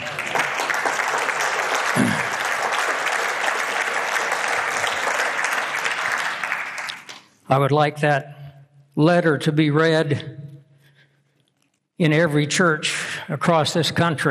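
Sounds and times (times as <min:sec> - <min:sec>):
audience applause: 0:00.0 - 0:07.2
speech: 0:07.5 - 0:08.4, 0:09.0 - 0:10.4, 0:12.0 - 0:14.2.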